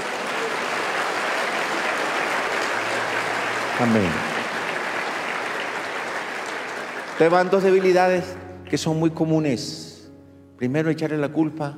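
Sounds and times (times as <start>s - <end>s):
crowd applauding: 0.0s - 9.0s
speech: 3.8s - 4.3s, 7.2s - 9.9s, 10.6s - 11.7s.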